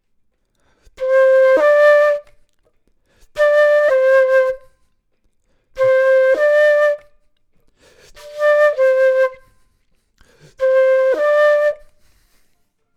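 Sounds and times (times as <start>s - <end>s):
flute: 0.9s - 2.5s, 3.3s - 5.0s, 5.7s - 12.6s.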